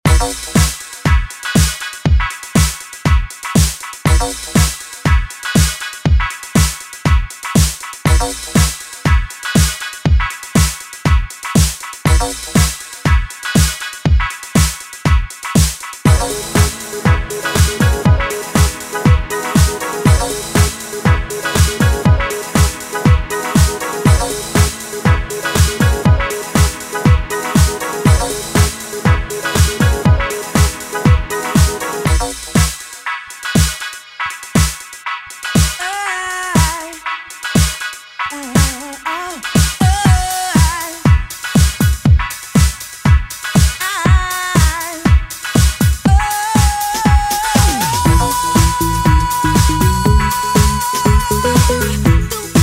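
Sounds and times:
90s-style music at 120bpm: 0.1 - 52.6.

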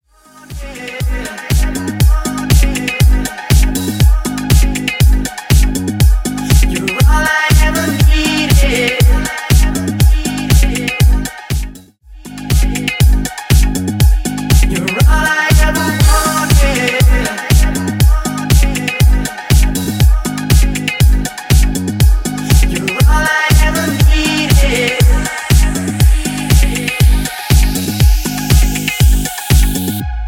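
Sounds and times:
drum loop: 0.5 - 30.1.

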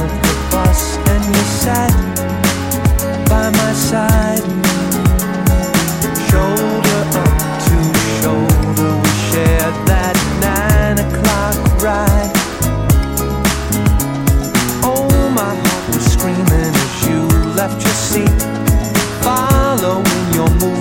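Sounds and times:
1970s classic drum beat: 0.0 - 20.7.

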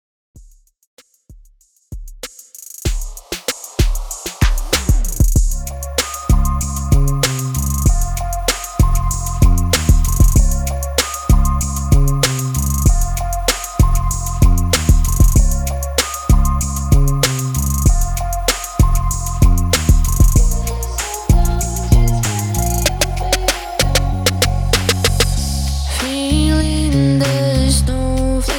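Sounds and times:
music beat at 96 BPM: 0.4 - 28.5.

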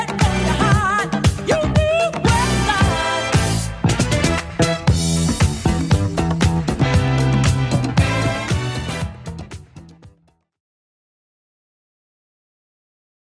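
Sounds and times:
80s drum machine beat: 0.0 - 10.3.

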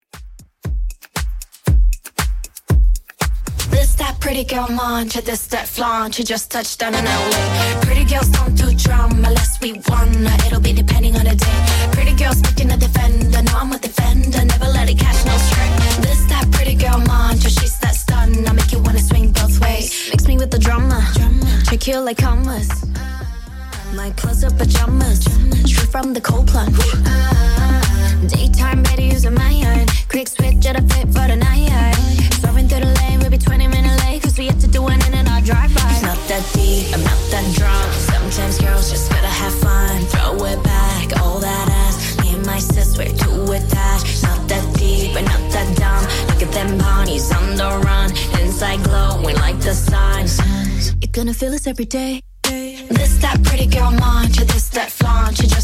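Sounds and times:
pop track at 117 bpm: 0.0 - 55.6.

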